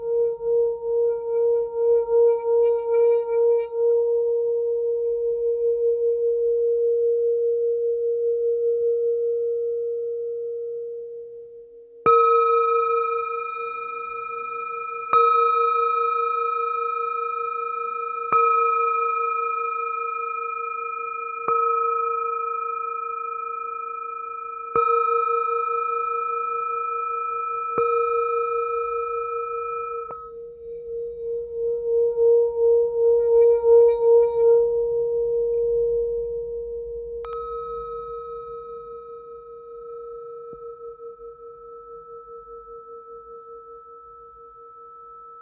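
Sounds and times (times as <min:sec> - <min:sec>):
antique 11 cm Tibetan singing bowl ringing on B flat: 0:00.0 - 0:45.3.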